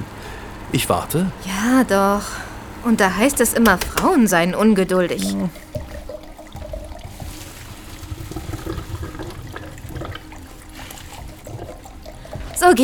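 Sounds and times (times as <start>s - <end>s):
speech: 0.7s - 5.6s, 12.6s - 12.8s
wine pouring into glasses: 5.1s - 12.8s.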